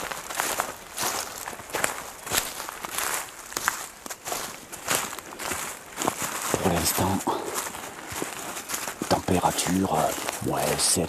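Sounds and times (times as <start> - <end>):
footsteps crunching through a thick layer of dry dead leaves: 0.0 - 11.0
speech: 6.8 - 7.4, 9.3 - 11.0.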